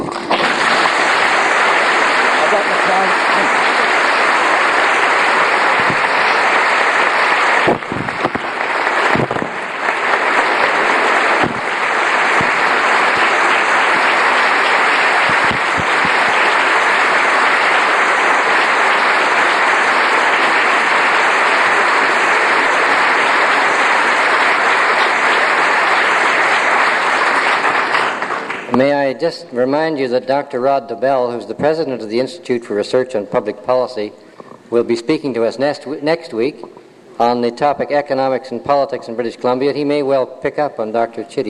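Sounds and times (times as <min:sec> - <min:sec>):
audience applause: 0:00.0 - 0:28.8
speech: 0:29.2 - 0:41.4.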